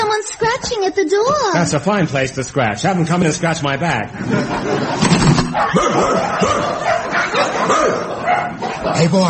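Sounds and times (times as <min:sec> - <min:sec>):
speech: 0:00.1 - 0:06.9, 0:08.9 - 0:09.2
laughter: 0:04.0 - 0:09.2
small dog barking and yipping: 0:05.6 - 0:08.6.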